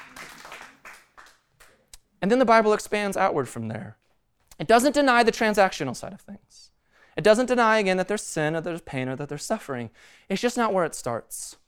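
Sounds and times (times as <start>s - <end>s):
audience clapping: 0.0s - 1.9s
speech: 2.2s - 4.0s, 4.6s - 11.6s.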